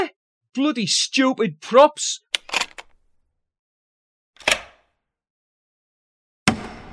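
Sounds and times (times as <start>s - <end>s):
speech: 0.5s - 2.2s
key unlocking a stuck door: 2.4s - 3.2s, 4.4s - 4.9s.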